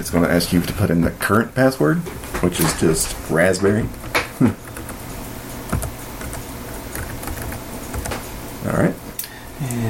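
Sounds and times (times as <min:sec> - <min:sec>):
speech: 0:00.0 - 0:04.6
computer keyboard keystrokes typing the passwd command: 0:04.1 - 0:05.0, 0:05.7 - 0:08.2.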